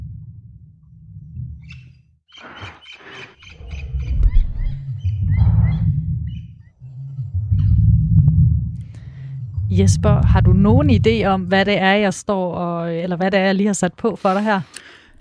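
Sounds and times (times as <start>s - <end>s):
Tyrannosaurus rex roar and groan: 2.4s - 11.6s
speech: 9.8s - 15.2s.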